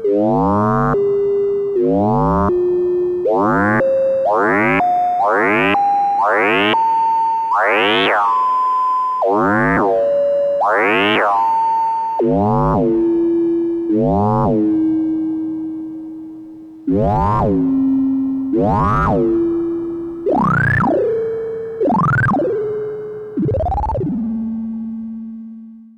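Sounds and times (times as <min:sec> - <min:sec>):
analog synth through delay mod module: 0:00.0 - 0:25.7.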